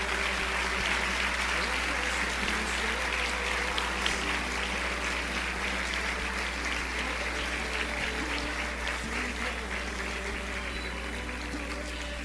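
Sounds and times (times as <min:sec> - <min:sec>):
applause from a large crowd: 0:00.0 - 0:12.2.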